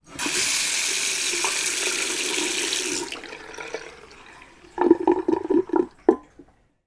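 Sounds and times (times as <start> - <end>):
household sink tap water running: 0.0 - 6.6
person gargling: 4.8 - 6.2.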